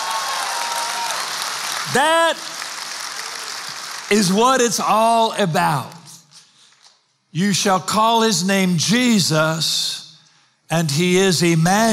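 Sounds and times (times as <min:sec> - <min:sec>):
audience hand clapping: 0:00.0 - 0:05.1
speech: 0:01.8 - 0:02.6, 0:04.1 - 0:06.0, 0:07.3 - 0:10.0, 0:10.7 - 0:11.9.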